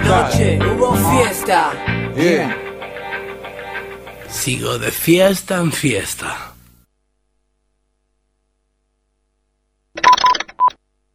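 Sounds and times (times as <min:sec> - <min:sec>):
speech: 0:00.1 - 0:02.7, 0:04.3 - 0:06.5
telephone keypad tones: 0:10.0 - 0:10.8.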